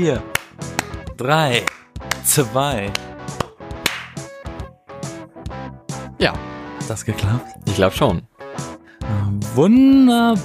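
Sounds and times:
speech: 0.0s - 0.4s, 1.2s - 3.1s, 6.2s - 8.3s, 9.1s - 10.4s
sharp hand clap: 0.2s - 4.3s
brief snapping transients: 3.4s - 4.2s.

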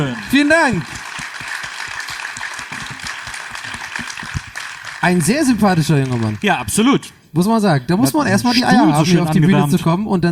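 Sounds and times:
speech: 0.0s - 1.0s, 5.0s - 10.2s
audience applause: 0.0s - 6.7s.

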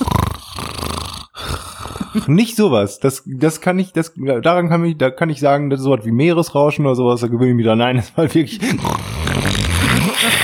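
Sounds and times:
voice imitating loud snoring: 0.0s - 2.3s, 8.6s - 10.4s
speech: 2.2s - 9.3s
laughter: 9.9s - 10.4s.

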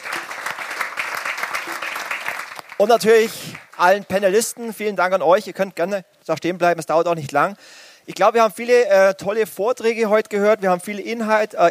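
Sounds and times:
audience applause: 0.0s - 3.8s
speech: 2.8s - 11.7s.

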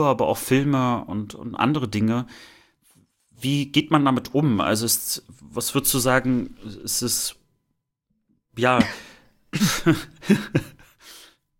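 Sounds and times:
speech: 0.0s - 2.6s, 3.4s - 7.4s, 8.6s - 10.8s
cough: 9.6s - 10.1s.

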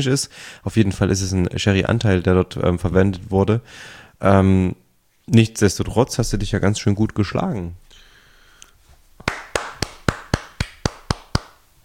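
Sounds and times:
speech: 0.0s - 7.9s
one-handed clap: 9.2s - 11.6s.

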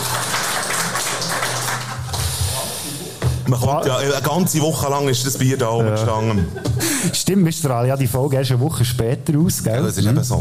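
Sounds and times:
crowd applause: 0.0s - 3.0s
speech: 3.5s - 10.4s
laughter: 6.1s - 7.3s.

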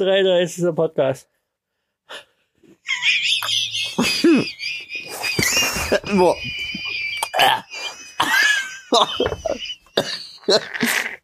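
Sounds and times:
speech: 0.0s - 1.4s, 2.1s - 2.3s, 2.9s - 4.6s, 5.9s - 6.6s, 8.9s - 11.0s
laughter: 2.8s - 11.0s
person coughing and spluttering after drink went down the wrong pipe: 7.2s - 8.6s, 10.0s - 11.2s.

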